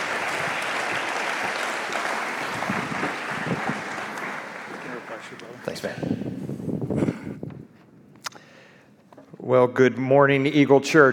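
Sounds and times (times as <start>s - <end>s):
audience applauding a guest speaker: 0.0s - 5.6s
speech: 5.8s - 6.1s, 9.5s - 11.1s.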